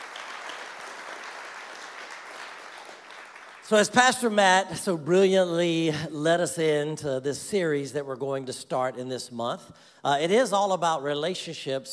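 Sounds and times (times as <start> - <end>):
church audience applauding: 0.0 - 4.0
speech: 3.7 - 11.9.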